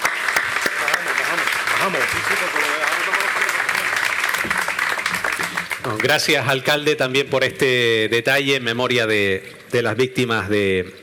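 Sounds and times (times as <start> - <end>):
audience applause: 0.0 - 6.7
speech: 1.8 - 3.0, 5.8 - 11.0.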